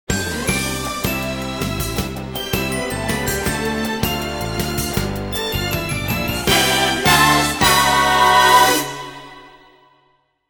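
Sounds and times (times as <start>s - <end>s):
eyecatch music: 0.1s - 9.9s.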